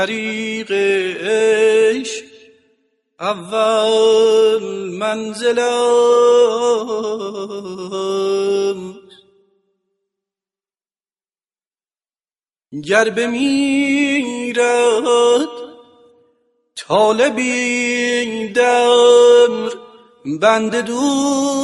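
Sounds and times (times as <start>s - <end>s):
poem sung in mokhalef mode: 0.0s - 10.4s, 12.6s - 21.6s.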